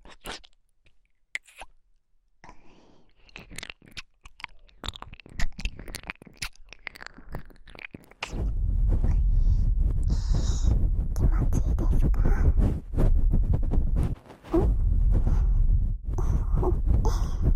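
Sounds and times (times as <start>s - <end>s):
crackly chewing and crunching: 0.0s - 1.8s, 3.0s - 8.4s
ear-eating wet mouth clicks and smacks: 0.0s - 1.8s, 3.1s - 8.3s
thick steady low rumble: 8.2s - 17.5s.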